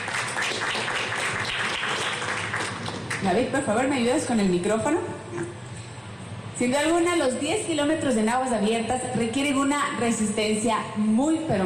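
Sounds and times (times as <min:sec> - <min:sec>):
audience applause: 0:00.0 - 0:03.2
speech: 0:03.2 - 0:05.6, 0:06.6 - 0:11.6.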